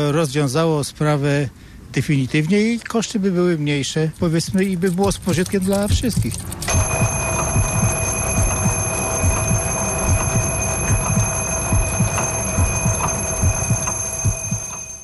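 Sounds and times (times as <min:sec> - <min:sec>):
speech: 0:00.0 - 0:07.0
alarm clock ringing: 0:05.9 - 0:15.0.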